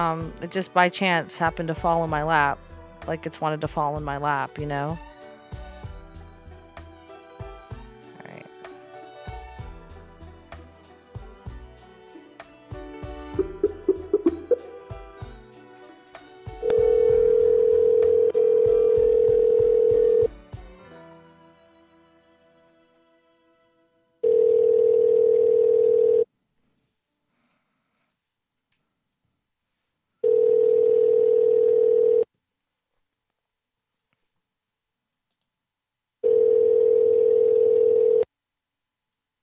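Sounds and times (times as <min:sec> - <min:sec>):
speech: 0:00.0 - 0:05.1
steady telephone tone: 0:16.6 - 0:20.3, 0:24.2 - 0:26.3, 0:30.2 - 0:32.3, 0:36.2 - 0:38.3.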